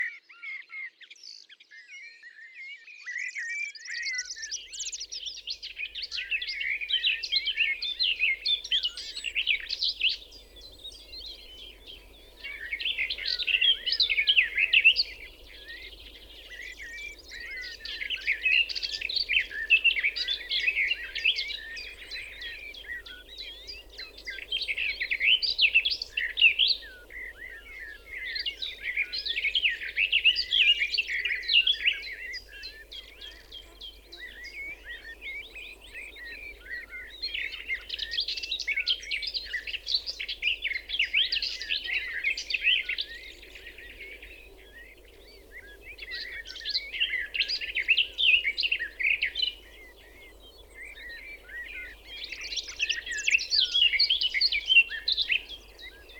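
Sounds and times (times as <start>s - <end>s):
garden warbler singing: 0.0s - 56.1s.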